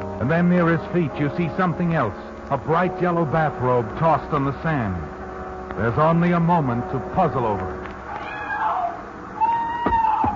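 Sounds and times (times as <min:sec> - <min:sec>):
speech: 0:00.2 - 0:05.1, 0:05.8 - 0:07.8
woman crying out in the surf: 0:08.1 - 0:10.3.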